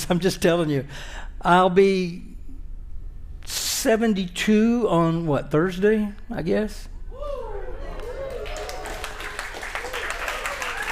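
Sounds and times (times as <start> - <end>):
speech: 0.1 - 2.3, 3.5 - 6.9
audience applause: 8.0 - 10.9.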